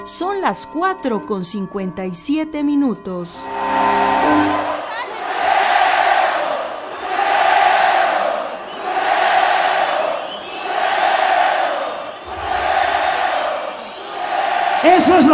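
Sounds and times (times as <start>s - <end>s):
speech: 0.4s - 4.7s
stadium crowd chanting European-style songs: 4.2s - 15.2s.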